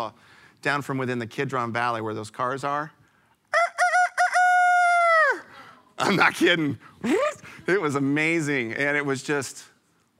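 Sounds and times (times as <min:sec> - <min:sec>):
speech: 0:00.0 - 0:03.0, 0:06.0 - 0:09.7
rooster crowing: 0:03.5 - 0:05.5.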